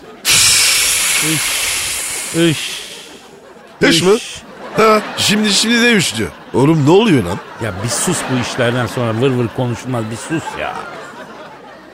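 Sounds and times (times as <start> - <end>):
laughter: 0.0 - 11.9
breath blowing straight into a microphone: 0.2 - 3.4
speech: 1.2 - 1.6, 2.3 - 2.8, 3.8 - 11.0.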